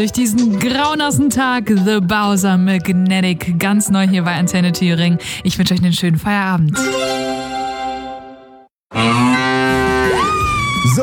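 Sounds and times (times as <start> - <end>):
speech: 0.0 - 7.5, 10.9 - 11.0
cow mooing: 8.9 - 10.4.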